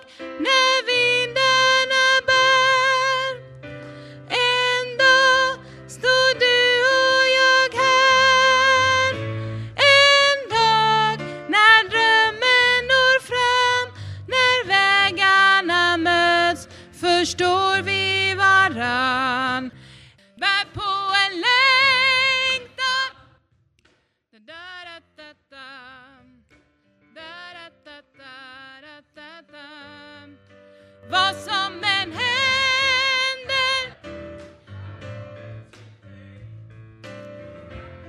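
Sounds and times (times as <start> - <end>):
bass: 0.3 - 23.4, 30.2 - 38.0.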